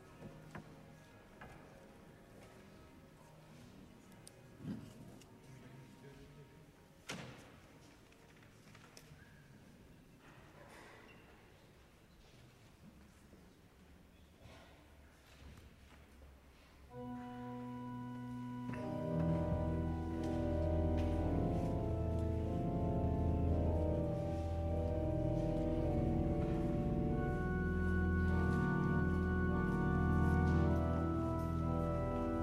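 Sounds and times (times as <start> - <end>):
church organ playing: 16.9 - 32.4
church bells ringing: 17.0 - 32.4.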